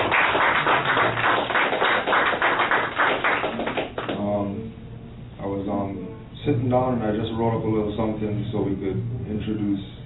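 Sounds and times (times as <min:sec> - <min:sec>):
audience applause: 0:00.0 - 0:04.2
speech: 0:06.7 - 0:10.0.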